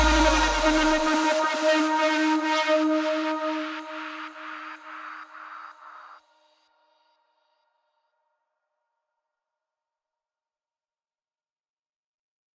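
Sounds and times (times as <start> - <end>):
melodic techno remix: 0.0 - 5.4.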